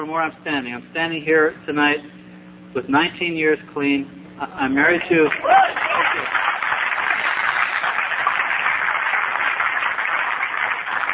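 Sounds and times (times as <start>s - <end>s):
speech: 0.0s - 2.2s, 2.8s - 6.4s
audience applause: 5.3s - 11.1s.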